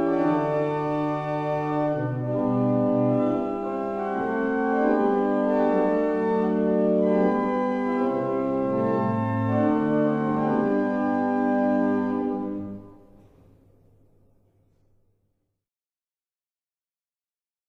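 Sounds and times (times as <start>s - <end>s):
barrel organs in Hanover: 0.0s - 13.1s.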